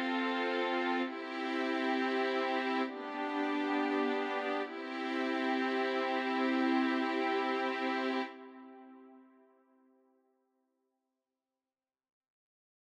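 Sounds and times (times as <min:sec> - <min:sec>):
strings: 0:00.0 - 0:09.6.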